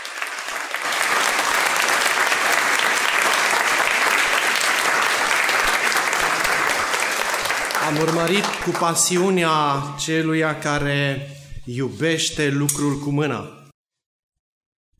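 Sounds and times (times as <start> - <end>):
audience applause: 0.0 - 9.4
speech: 7.9 - 13.6.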